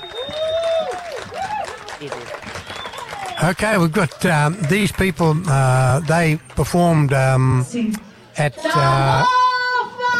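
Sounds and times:
audience applause: 0:00.0 - 0:07.1
speech: 0:03.4 - 0:09.4.

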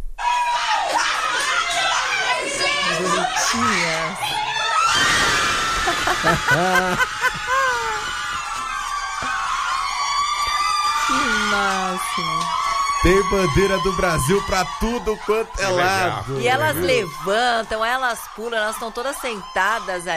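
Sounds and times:
nuns cheering and screaming celebrating a goal: 0:00.2 - 0:20.1
nuns shouting and laughing excitedly: 0:00.2 - 0:20.1
nuns chattering and giggling: 0:06.0 - 0:08.1
speech: 0:06.2 - 0:07.2, 0:11.5 - 0:20.1.

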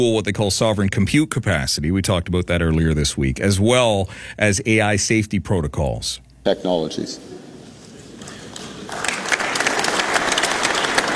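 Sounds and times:
speech: 0:00.0 - 0:07.4
audience applause: 0:07.4 - 0:11.1.

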